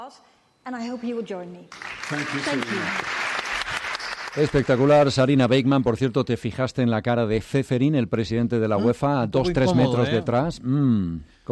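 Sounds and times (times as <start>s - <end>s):
speech: 0.1s - 3.2s, 4.4s - 11.5s
audience applause: 1.7s - 5.5s.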